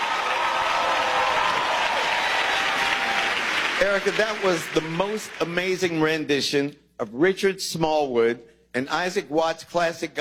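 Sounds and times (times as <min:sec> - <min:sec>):
audience applause welcoming a singer back at a gospel music celebration: 0:00.0 - 0:05.7
speech: 0:03.8 - 0:10.1.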